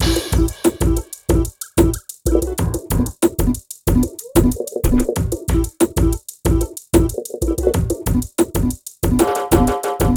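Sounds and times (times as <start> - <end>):
drum beat: 0.0 - 10.1.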